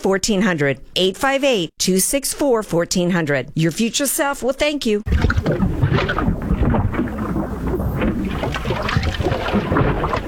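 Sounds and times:
speech: 0.0 - 6.4
watery gurgling from a clogged drain: 5.1 - 10.2.

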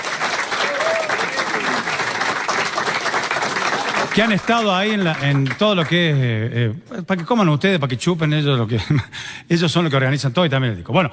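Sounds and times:
audience applause: 0.0 - 6.2
speech: 4.2 - 11.1.

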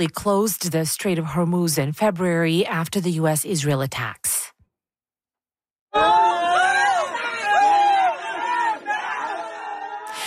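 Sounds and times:
speech: 0.0 - 4.4
rescuers cheering and shouting after finding trapped people: 6.0 - 10.2.

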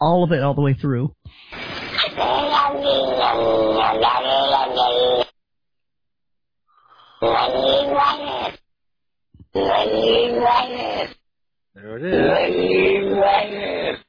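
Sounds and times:
speech: 0.0 - 5.2, 7.2 - 8.6, 9.5 - 11.2, 11.8 - 14.0
cat vocalization played backwards: 1.9 - 5.3, 7.2 - 8.6, 9.5 - 11.2, 11.9 - 14.0.

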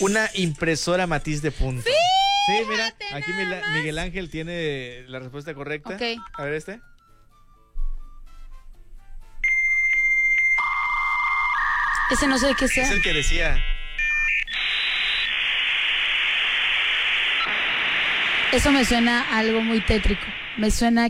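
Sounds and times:
speech: 0.0 - 6.9, 12.1 - 13.7, 18.5 - 21.0
dial-up modem connecting: 9.4 - 20.8.

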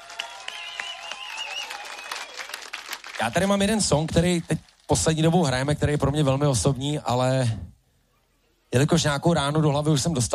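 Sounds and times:
audience clapping at a live band concert: 0.0 - 5.3
high whistled tones: 0.4 - 2.4
speech: 3.2 - 7.7, 8.7 - 10.3.

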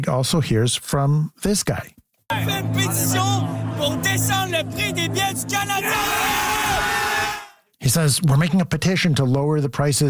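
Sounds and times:
speech: 0.0 - 7.1, 7.8 - 10.0
crowd cheering: 2.3 - 7.6.

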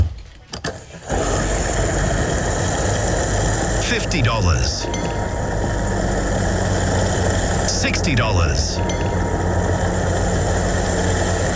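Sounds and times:
gas pump humming while filling up: 0.0 - 11.5
gas pump clicks: 3.8 - 11.5
speech: 4.1 - 5.4, 7.8 - 9.5.

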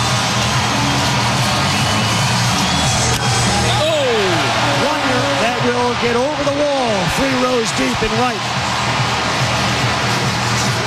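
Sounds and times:
baseball stadium crowd cheering: 0.0 - 10.8
people yelling: 0.6 - 9.2
speech: 7.7 - 8.6.

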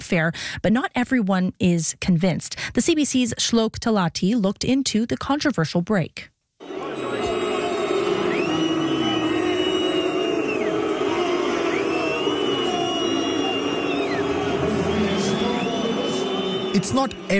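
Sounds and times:
speech: 0.1 - 6.3, 16.8 - 17.3
World Cup fans booing in a stadium: 6.6 - 17.3.

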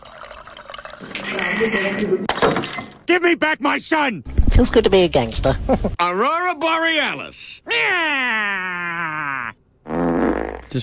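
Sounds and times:
speech: 1.0 - 9.1
fart sound effect: 9.9 - 10.8.

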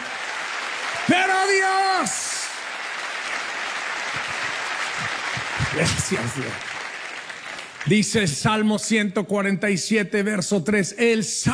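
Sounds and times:
audience applause: 0.0 - 8.4
speech: 1.1 - 2.3, 5.8 - 6.8, 7.8 - 11.5.

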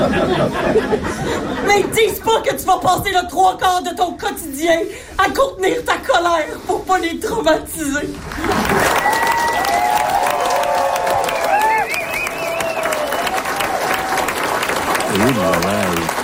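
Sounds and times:
laughter: 0.0 - 2.2, 15.1 - 16.1
speech: 0.2 - 9.3, 15.1 - 16.2
audience applause: 8.2 - 16.2.

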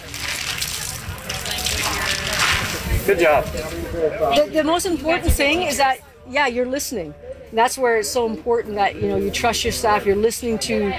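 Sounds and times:
hands washed under running water during protective-gear doffing: 0.0 - 3.4
speech: 3.1 - 10.9.

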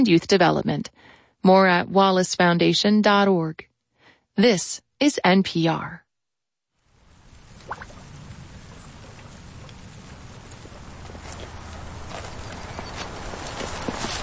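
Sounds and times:
speech: 0.0 - 3.7, 4.4 - 6.0
steady rain over a farmyard: 6.8 - 14.2
hooves clopping on the ground: 7.5 - 14.2.

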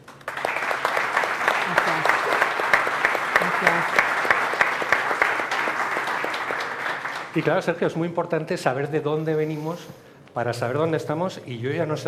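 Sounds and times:
audience clapping: 0.0 - 8.0
speech: 7.4 - 12.0.

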